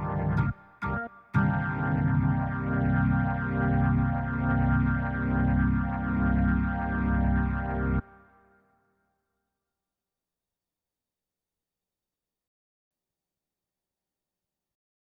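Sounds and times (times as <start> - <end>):
organ boogie bass line: 0.0 - 8.0.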